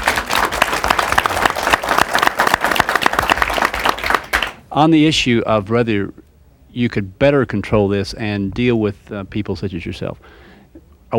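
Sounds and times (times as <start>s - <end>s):
audience applause: 0.0s - 4.6s
speech: 4.8s - 6.2s, 6.8s - 11.1s.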